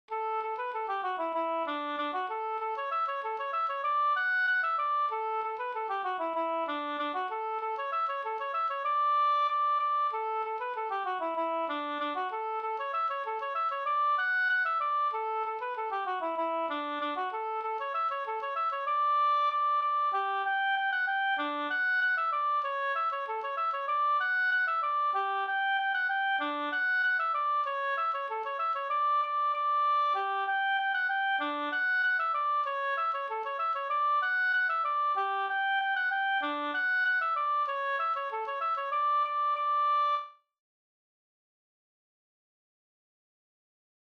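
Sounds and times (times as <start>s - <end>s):
polka music: 0.1s - 40.3s.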